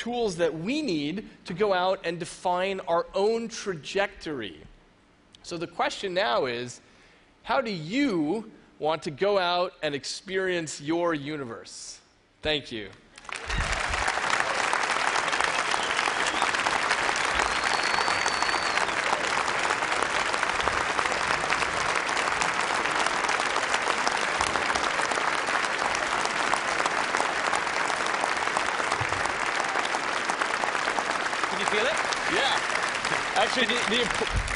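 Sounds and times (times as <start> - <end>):
speech: 0.0 - 4.7, 5.4 - 13.6, 33.6 - 34.5
large audience applause: 13.2 - 34.5
faint cheers: 15.4 - 19.3.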